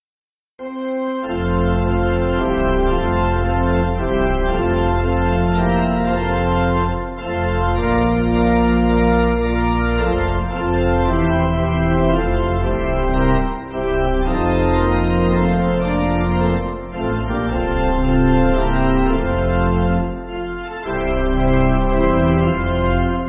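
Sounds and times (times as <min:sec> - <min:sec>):
pipe organ backing for churches: 0:00.6 - 0:23.2.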